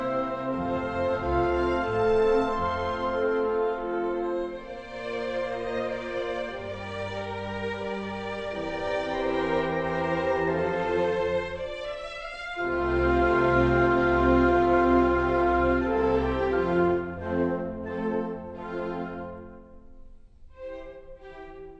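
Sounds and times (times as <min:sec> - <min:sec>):
classical music: 0:00.0 - 0:21.7.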